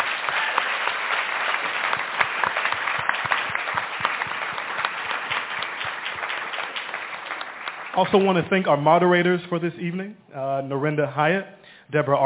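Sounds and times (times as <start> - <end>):
audience applause: 0.0 - 8.7
speech: 8.0 - 12.2.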